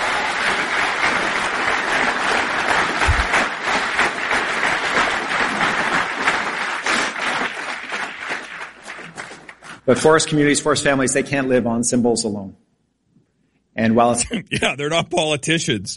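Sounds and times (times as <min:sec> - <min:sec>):
applause: 0:00.0 - 0:09.9
speech: 0:09.9 - 0:12.6, 0:13.8 - 0:15.9.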